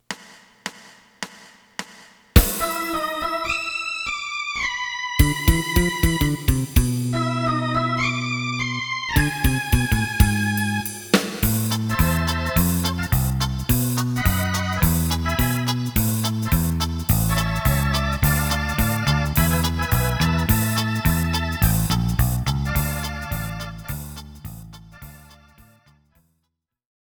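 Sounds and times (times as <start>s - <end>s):
lead melody: 2.4s - 25.6s.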